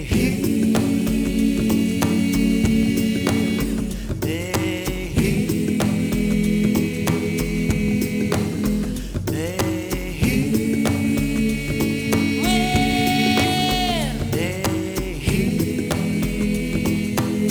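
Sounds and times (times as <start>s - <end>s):
ethnic chant: 0.1s - 17.4s.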